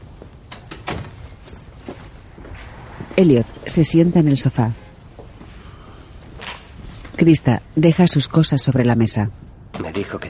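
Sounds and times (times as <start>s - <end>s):
door swinging shut: 0.5s - 1.6s
speech: 3.2s - 4.9s, 7.2s - 10.2s.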